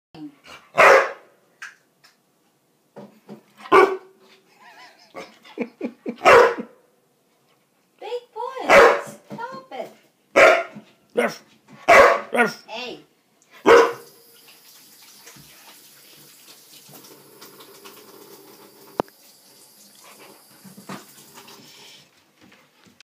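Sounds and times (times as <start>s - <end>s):
Japanese Akita dog: 0.5s - 1.2s, 3.6s - 4.2s, 6.2s - 6.7s, 8.7s - 9.2s, 10.4s - 12.6s, 13.5s - 14.1s.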